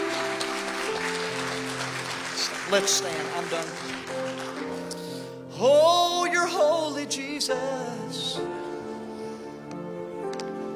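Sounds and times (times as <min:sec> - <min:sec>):
audience hand clapping: 0:00.0 - 0:05.3
speech: 0:02.7 - 0:04.8, 0:05.6 - 0:08.7.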